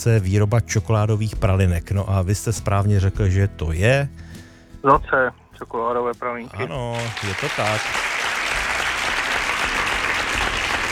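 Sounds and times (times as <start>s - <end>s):
speech: 0.0s - 8.1s
applause: 6.7s - 10.8s.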